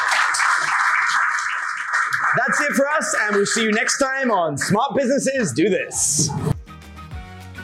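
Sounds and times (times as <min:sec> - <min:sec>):
audience applause: 0:00.0 - 0:04.7
speech: 0:02.3 - 0:06.5.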